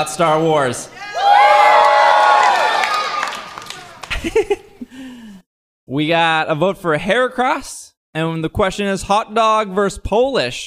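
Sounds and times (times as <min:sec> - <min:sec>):
speech: 0:00.0 - 0:01.2, 0:04.2 - 0:05.0, 0:05.9 - 0:10.6
crowd cheering and whooping: 0:00.9 - 0:04.5
laughter: 0:03.6 - 0:05.0.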